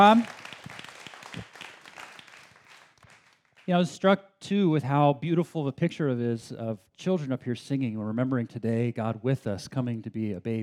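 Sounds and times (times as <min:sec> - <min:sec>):
speech: 0:00.0 - 0:00.4, 0:03.7 - 0:10.6
audience applause: 0:00.0 - 0:03.7.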